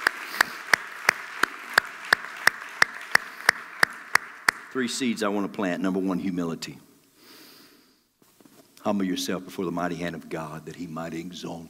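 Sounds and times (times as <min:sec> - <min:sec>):
audience clapping in unison: 0:00.0 - 0:05.1
speech: 0:04.7 - 0:06.9, 0:08.9 - 0:11.6.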